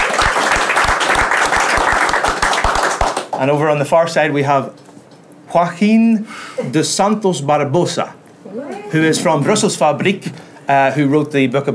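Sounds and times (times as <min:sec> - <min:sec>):
audience round of applause: 0:00.0 - 0:03.4
speech: 0:03.4 - 0:04.8, 0:05.5 - 0:11.7.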